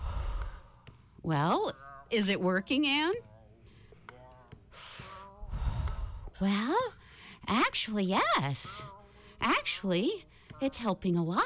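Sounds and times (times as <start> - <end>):
slow breaths from a breathing exercise: 0.0 - 1.2, 3.5 - 6.4, 7.0 - 7.5, 8.9 - 9.4, 10.2 - 10.6
speech: 1.2 - 3.3, 6.4 - 11.4.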